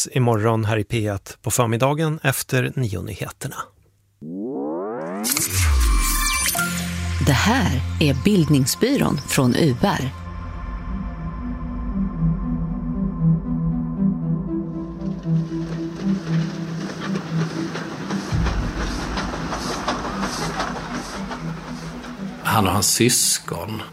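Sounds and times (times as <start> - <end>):
speech: 0.0 - 4.3, 7.2 - 10.2, 22.6 - 23.9
train engine drone at a railway station: 4.2 - 23.9
train wheels rattling: 14.9 - 23.8.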